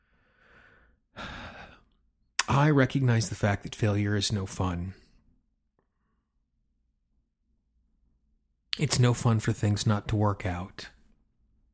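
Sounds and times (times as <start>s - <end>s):
person taking a deep breath during a hand-tapping relaxation exercise: 0.0s - 1.9s
speech: 2.6s - 5.0s, 8.8s - 11.0s.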